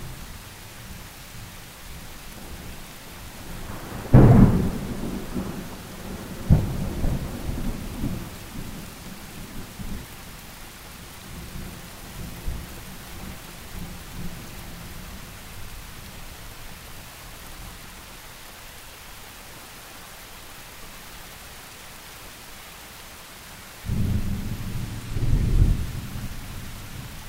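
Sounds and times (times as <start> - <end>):
thunder: 3.5 - 8.3, 23.9 - 26.3.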